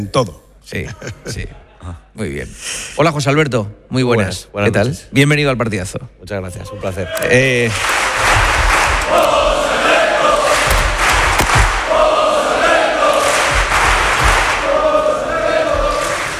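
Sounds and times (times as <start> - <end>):
speech: 0.0 - 8.5, 9.1 - 9.4
crowd of football fans chanting in unison at a match: 8.1 - 16.3
people shouting: 8.9 - 16.3.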